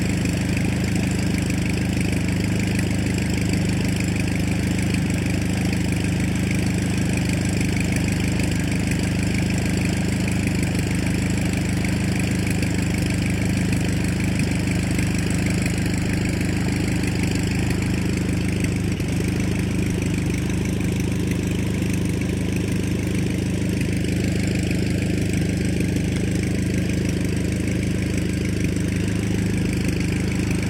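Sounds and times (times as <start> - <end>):
1939 Ryan STM-S2 airplane engine idling: 0.0 - 30.6.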